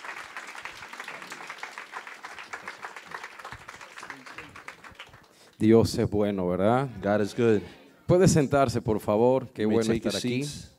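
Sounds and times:
audience applauding: 0:00.0 - 0:05.7
speech: 0:05.6 - 0:10.7.

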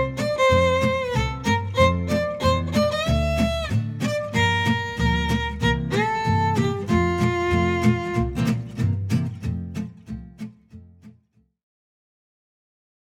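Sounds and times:
swing jazz melody: 0:00.0 - 0:09.8.

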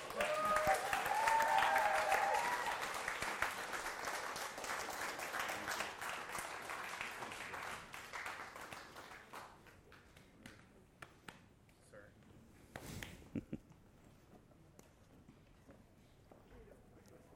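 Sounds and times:
church congregation applauding to welcome new elders: 0:00.0 - 0:10.3.

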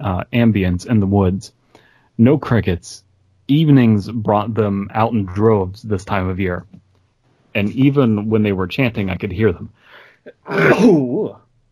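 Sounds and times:
speech: 0:00.0 - 0:01.6, 0:02.2 - 0:06.8, 0:07.6 - 0:11.4
sneeze: 0:10.5 - 0:11.1.

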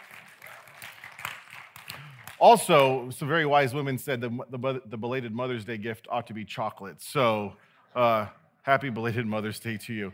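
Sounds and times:
audience clapping: 0:00.0 - 0:03.1
speech: 0:02.4 - 0:10.1.

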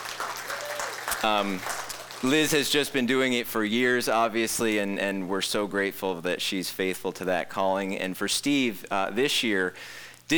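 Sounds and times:
applause: 0:00.0 - 0:02.7
speech: 0:01.2 - 0:10.3.

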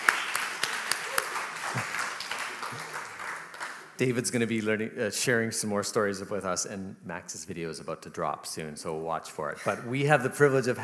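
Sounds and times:
audience clapping: 0:00.0 - 0:04.1
speech: 0:04.0 - 0:10.8.

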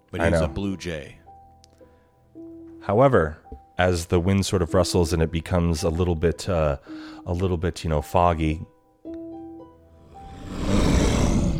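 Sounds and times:
speech: 0:00.1 - 0:01.2, 0:02.8 - 0:08.7
eerie growl: 0:10.2 - 0:11.5.

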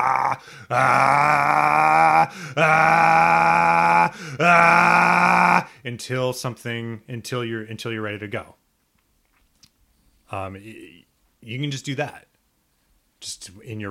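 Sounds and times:
anime-style power-up charging scream: 0:00.0 - 0:05.7
speech: 0:00.4 - 0:08.6, 0:10.3 - 0:12.3, 0:13.2 - 0:13.9.

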